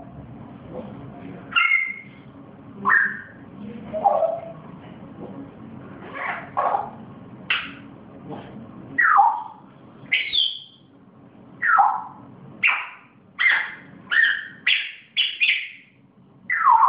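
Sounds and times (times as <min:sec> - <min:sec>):
pet grey parrot whistling: 0:01.5 - 0:02.2, 0:02.8 - 0:04.5, 0:09.0 - 0:10.8, 0:11.6 - 0:15.9, 0:16.5 - 0:16.8.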